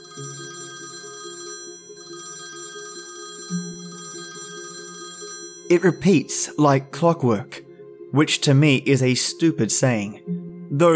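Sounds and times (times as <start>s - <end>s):
phone alarm ringtone: 0.0s - 6.6s
speech: 5.7s - 10.9s.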